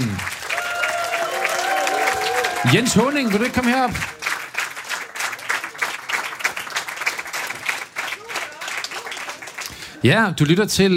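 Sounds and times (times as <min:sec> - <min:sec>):
audience applause: 0:00.0 - 0:10.6
speech: 0:02.6 - 0:04.2, 0:10.0 - 0:10.9.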